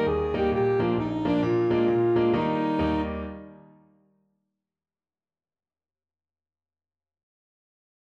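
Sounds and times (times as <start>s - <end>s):
alto saxophone: 0.0s - 3.7s.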